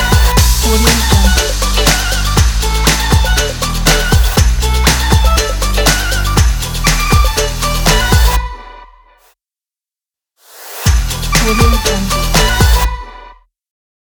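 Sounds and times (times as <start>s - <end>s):
happy pop disco music: 0.0s - 8.6s, 10.9s - 13.0s.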